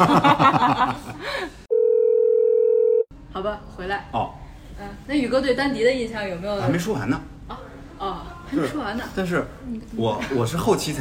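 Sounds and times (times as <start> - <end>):
speech: 0.0 - 0.7, 3.4 - 11.0
telephone ringing for an incoming call: 1.7 - 3.1.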